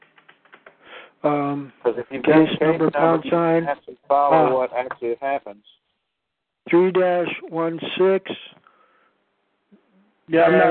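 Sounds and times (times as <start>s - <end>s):
keyboard typing as a case number is entered into a chat window: 0.0s - 0.8s
speech: 1.2s - 5.8s, 6.7s - 8.6s, 10.3s - 10.6s.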